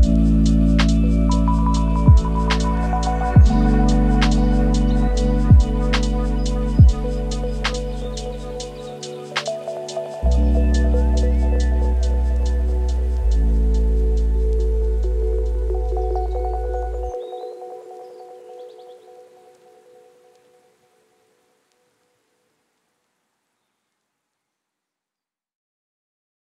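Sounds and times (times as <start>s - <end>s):
lofi hip hop: 0.0s - 16.7s.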